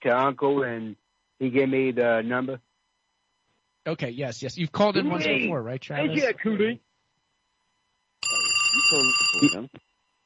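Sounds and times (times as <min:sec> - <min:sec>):
speech: 0:00.0 - 0:02.7, 0:03.8 - 0:06.9, 0:08.7 - 0:09.9
bell-like telephone ring with incoming call: 0:08.2 - 0:09.6.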